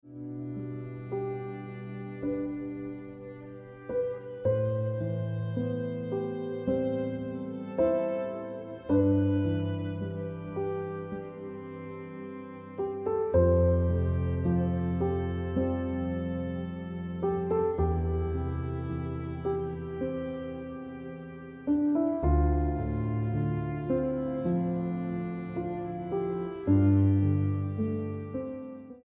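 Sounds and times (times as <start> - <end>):
piano ringtone music: 0.3 - 29.0.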